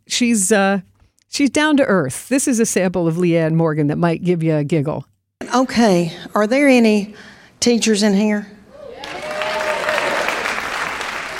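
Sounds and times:
speech: 0.2 - 9.2
cheer or whoop: 8.7 - 11.3
audience clapping: 9.0 - 11.3.

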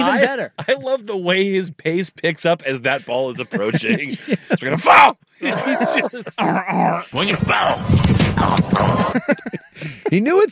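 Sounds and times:
laughter: 0.0 - 7.7, 8.8 - 10.5
speech: 0.1 - 10.5
grunt: 5.4 - 9.2.

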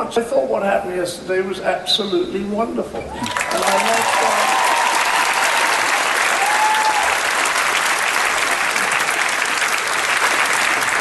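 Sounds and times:
speech: 0.1 - 3.9
audience round of applause: 3.2 - 10.9.

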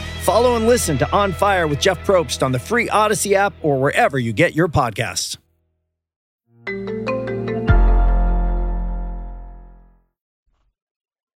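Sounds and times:
speech: 0.2 - 5.4
short musical bumper with plucked notes and deep chord hit: 6.6 - 10.0.

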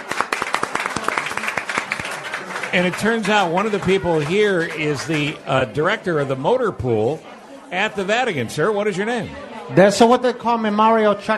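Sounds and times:
audience applause at a cafe event: 0.0 - 5.7
speech: 2.7 - 11.3.

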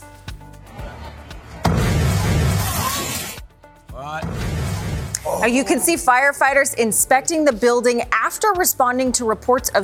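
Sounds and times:
apartment building explosion: 1.6 - 3.4, 4.1 - 5.3
speech: 5.4 - 9.8.

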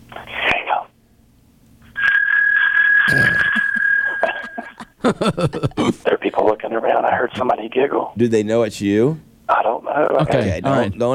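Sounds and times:
bell ringing: 2.0 - 4.9
laughter: 3.1 - 6.1
speech: 5.1 - 11.1.

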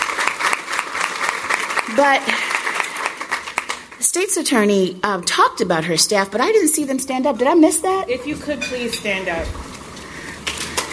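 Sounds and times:
audience applauding: 0.0 - 4.4
speech: 1.9 - 2.5, 4.1 - 9.7.

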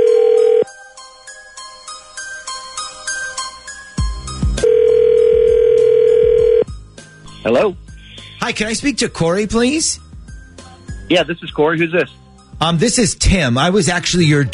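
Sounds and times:
telephone dial tone: 0.0 - 0.7, 4.6 - 6.6
speech: 7.5 - 7.8, 8.4 - 10.0, 11.1 - 14.5.

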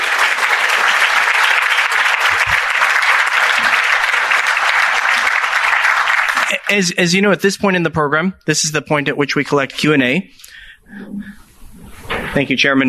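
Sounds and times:
audience applause: 0.0 - 7.0
speech: 6.7 - 11.4, 12.3 - 12.8.

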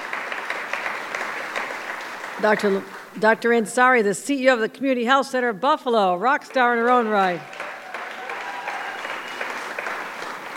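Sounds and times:
audience round of applause: 0.0 - 3.1, 6.5 - 10.5
speech: 2.4 - 7.6.

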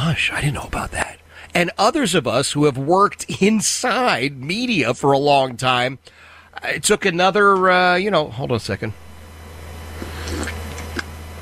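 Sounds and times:
steady low hum: 0.0 - 11.4
speech: 0.1 - 1.0, 1.6 - 9.0
person sipping coffee: 9.9 - 11.1.

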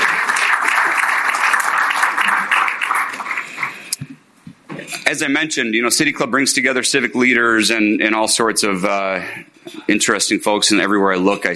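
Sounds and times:
audience applause: 0.0 - 3.9
speech: 5.1 - 11.5.

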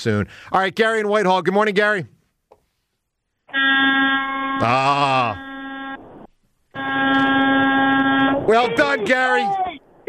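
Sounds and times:
speech: 0.0 - 2.2, 3.5 - 5.4, 8.5 - 9.6
loud buzzy horn blown by a caller: 3.5 - 6.0, 6.8 - 8.5
swooping second horn tone: 3.5 - 8.9.

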